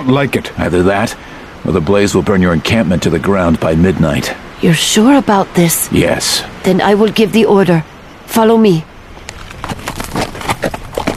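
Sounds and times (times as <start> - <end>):
speech: 0.0 - 8.9
horse hooves clip-clopping down a ridge toward a river: 9.1 - 11.1.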